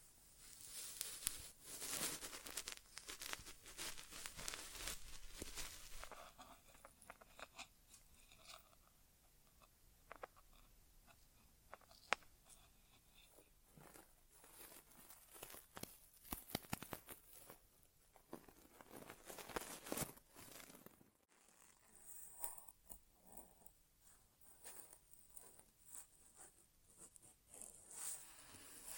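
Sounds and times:
crackling and scratching of an ASMR inner ear exam: 0:00.0 - 0:28.9
rustling and clicks: 0:00.5 - 0:07.6, 0:13.8 - 0:21.1.

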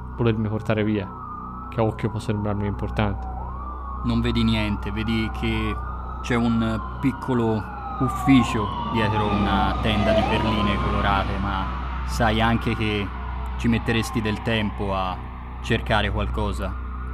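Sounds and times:
police siren wailing: 0:00.0 - 0:17.1
speech: 0:00.2 - 0:03.3, 0:04.0 - 0:16.8.

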